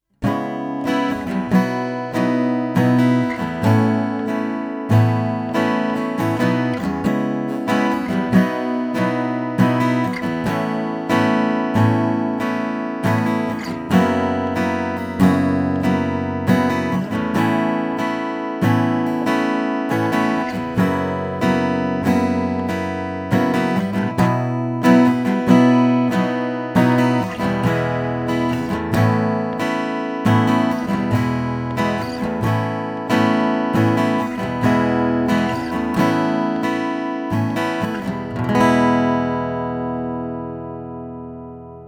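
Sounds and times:
Ibanez AAM700CE NT guitar strumming on both pickups: 0.2s - 41.8s.

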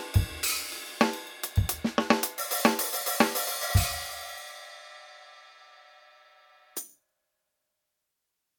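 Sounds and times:
EFNOTE Mini 4 Street Groove drum kit: 0.0s - 5.1s.

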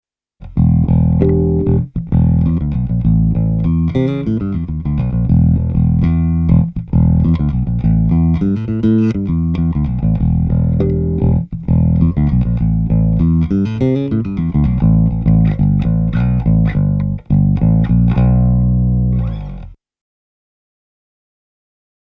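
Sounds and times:
bass through Rupert Neve Designs Portico 5017 DI and microphone blend: 0.4s - 19.8s.

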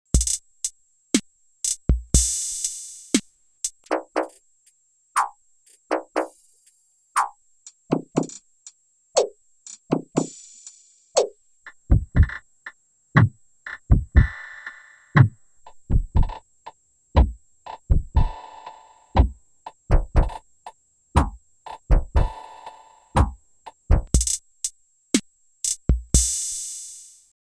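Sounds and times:
drums with octaver effect: 0.1s - 4.6s, 5.2s - 27.4s.

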